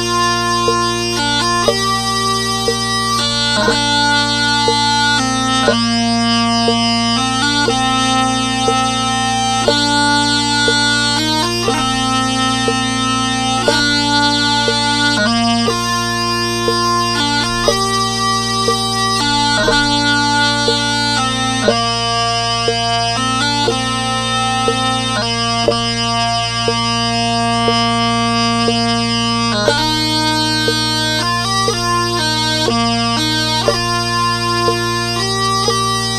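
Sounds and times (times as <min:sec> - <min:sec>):
bagpipe section playing: 0:00.0 - 0:36.1.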